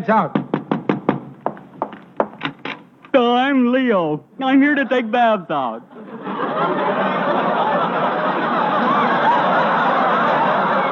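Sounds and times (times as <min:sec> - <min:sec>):
speech: 0:00.0 - 0:00.4, 0:03.1 - 0:07.0
knocking at a door: 0:00.3 - 0:02.8
laughter: 0:05.8 - 0:10.9.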